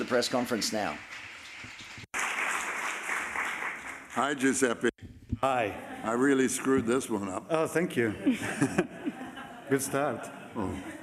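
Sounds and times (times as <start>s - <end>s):
applause at a film festival press conference: 0.0s - 4.9s
speech: 0.1s - 1.8s, 4.2s - 8.9s, 9.7s - 11.0s
laughter: 5.4s - 11.0s.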